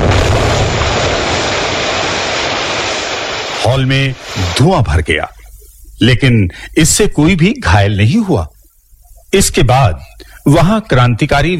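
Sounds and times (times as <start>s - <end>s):
loud bomb explosion: 0.0s - 4.6s
speech: 3.8s - 5.4s, 6.0s - 8.5s, 9.3s - 11.5s.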